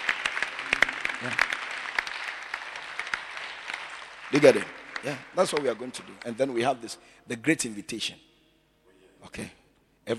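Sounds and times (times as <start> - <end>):
crowd clapping: 0.0 - 6.8
speech: 1.2 - 1.5, 4.3 - 8.3, 9.2 - 10.1.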